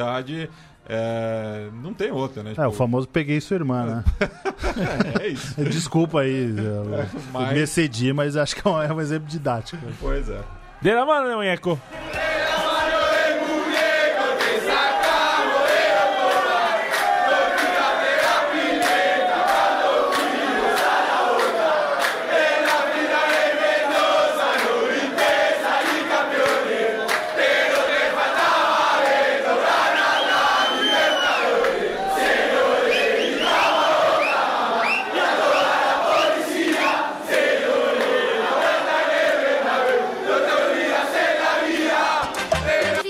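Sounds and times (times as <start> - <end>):
speech: 0.0 - 12.0
laughter: 3.9 - 7.7
football supporters chanting in stadium: 11.8 - 43.0.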